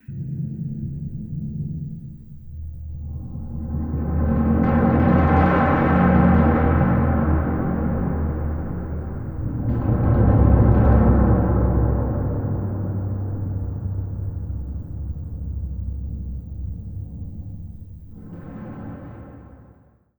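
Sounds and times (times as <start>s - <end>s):
short scary sound: 3.3s - 19.3s.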